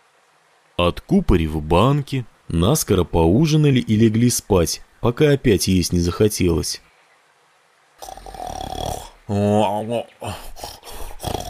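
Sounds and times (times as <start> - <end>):
speech: 0.8 - 6.9, 9.3 - 10.8
elderly grandfather snoring at night: 8.0 - 9.2, 10.4 - 11.4.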